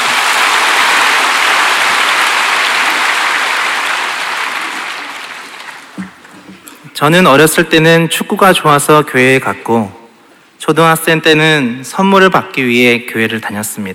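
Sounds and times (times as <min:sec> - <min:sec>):
audience applause: 0:00.0 - 0:06.4
speech: 0:07.0 - 0:10.0, 0:10.7 - 0:13.9.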